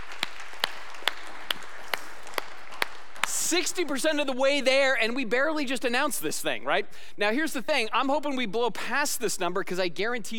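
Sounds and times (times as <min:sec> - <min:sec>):
audience clapping: 0:00.0 - 0:04.2
speech: 0:03.5 - 0:10.3.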